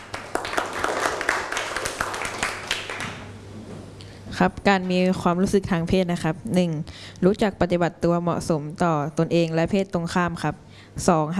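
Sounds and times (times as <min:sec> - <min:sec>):
audience applause: 0:00.0 - 0:03.3
speech: 0:04.4 - 0:11.3.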